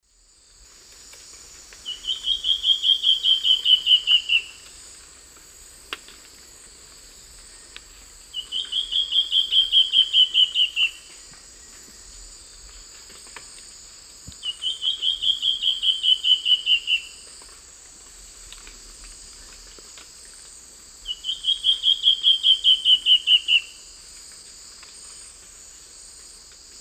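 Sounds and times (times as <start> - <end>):
black-faced antbird whistled song in eastern lowland South America: 1.9 - 4.6, 8.4 - 11.0, 14.4 - 17.2, 21.1 - 23.8.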